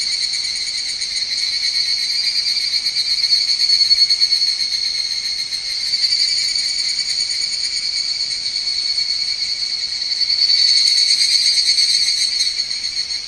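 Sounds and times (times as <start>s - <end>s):
Higurashi cicada call with high metallic trill: 0.0s - 13.2s.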